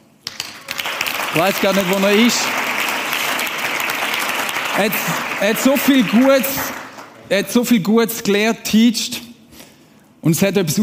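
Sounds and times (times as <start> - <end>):
crowd applauding: 0.2 - 7.3
speech: 1.3 - 2.6, 4.8 - 6.7, 7.3 - 9.2, 10.2 - 10.8.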